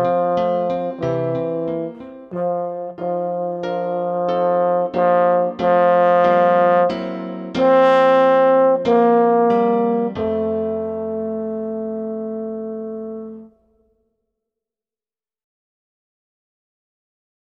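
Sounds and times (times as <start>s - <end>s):
French horn solo melody: 0.0s - 13.8s
piano accompaniment: 0.0s - 13.8s.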